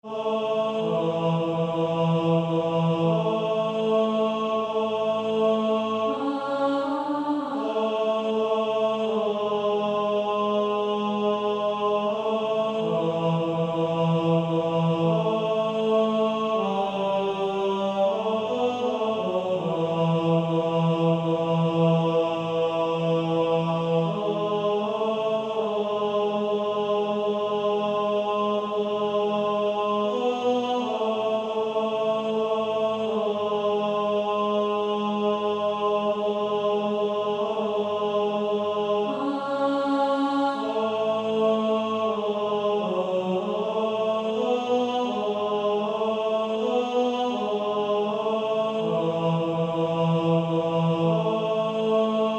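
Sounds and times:
male choir singing, tenor voice: 0.0s - 52.3s.

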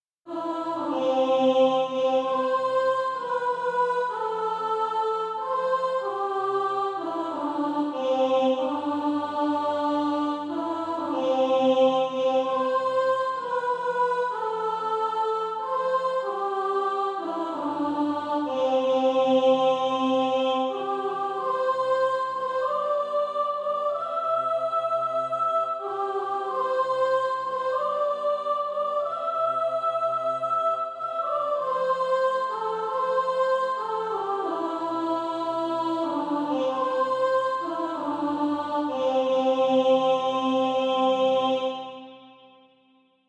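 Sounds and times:
soprano singing: 0.3s - 42.1s.

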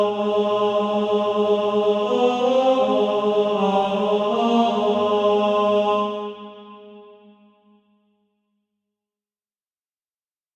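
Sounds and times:
tenor SATB practice part: 0.0s - 7.0s.

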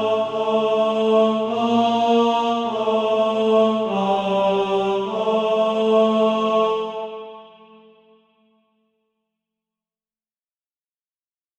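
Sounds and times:
tenor voice singing SATB practice music: 0.0s - 7.8s.

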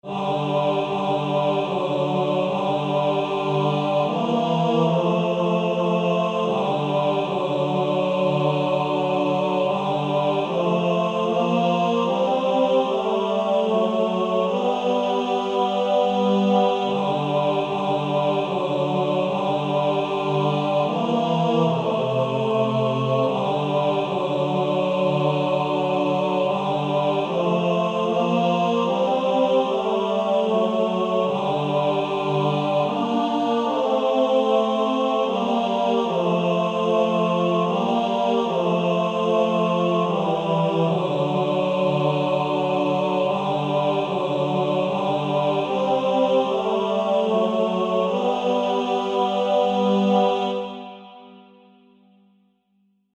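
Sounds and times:
male choir singing: 0.0s - 51.5s.

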